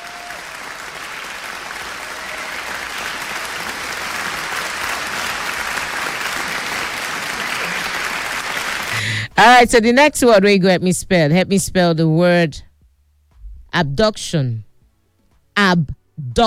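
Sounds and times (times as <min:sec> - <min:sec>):
audience applause: 0:00.0 - 0:09.2
speech: 0:09.4 - 0:12.7, 0:13.7 - 0:14.7, 0:15.6 - 0:16.4.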